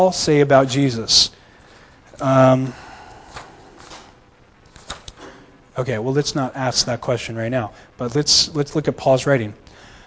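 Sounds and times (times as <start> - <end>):
speech: 0.0 - 1.4, 2.2 - 2.8, 5.8 - 9.6
pages of a book being turned: 3.3 - 4.1, 4.7 - 5.2.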